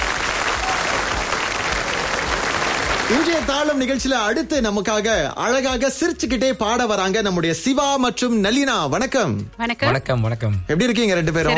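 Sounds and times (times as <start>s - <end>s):
audience applause for a singer on a music show: 0.0s - 3.8s
speech: 3.1s - 11.5s.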